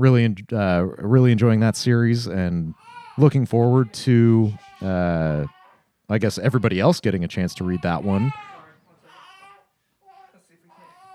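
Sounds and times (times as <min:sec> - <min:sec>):
speech: 0:00.0 - 0:08.5
fussy baby crying and whimpering: 0:02.7 - 0:05.9, 0:07.5 - 0:11.1.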